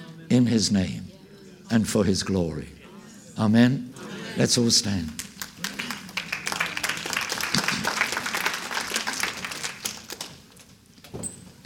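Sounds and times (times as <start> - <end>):
speech: 0.3 - 1.1, 1.7 - 2.8, 3.4 - 5.2
audience clapping: 4.9 - 10.7.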